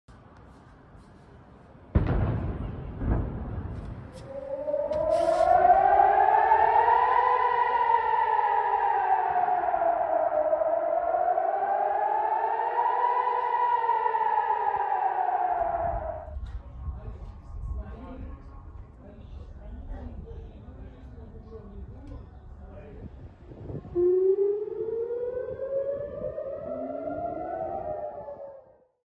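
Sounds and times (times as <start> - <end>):
war air raid siren: 3.1 - 19.4, 23.5 - 29.0.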